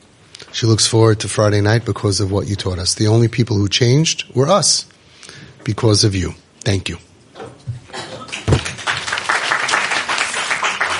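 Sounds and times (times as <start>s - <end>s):
speech: 0.6s - 5.0s, 5.6s - 7.1s
audience applause: 8.2s - 10.9s.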